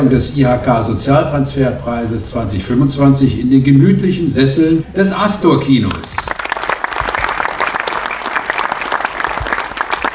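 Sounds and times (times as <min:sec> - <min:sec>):
speech: 0:00.0 - 0:06.2
audience applause in a cinema hall: 0:06.2 - 0:10.1.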